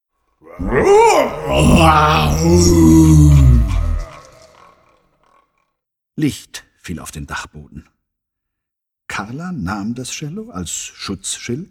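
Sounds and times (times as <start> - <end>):
speech: 0.4 - 3.5, 6.2 - 8.0, 9.2 - 11.6
person imitating an enormous roar: 0.4 - 4.8.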